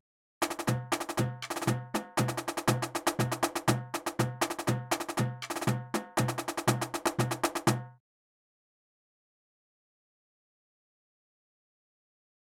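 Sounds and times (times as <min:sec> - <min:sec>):
marching drums: 0:00.4 - 0:08.0.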